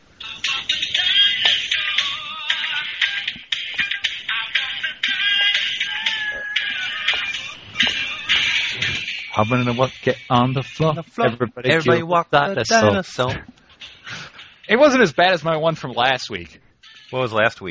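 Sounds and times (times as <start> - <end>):
phone ringtone tune: 0.2 - 10.8
speech: 9.4 - 13.5, 14.7 - 17.6.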